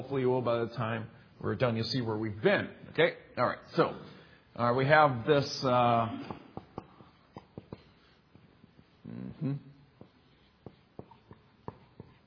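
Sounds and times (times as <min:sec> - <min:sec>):
speech: 0:00.0 - 0:06.4, 0:09.1 - 0:09.7
writing on a board: 0:06.2 - 0:09.1, 0:09.9 - 0:12.2.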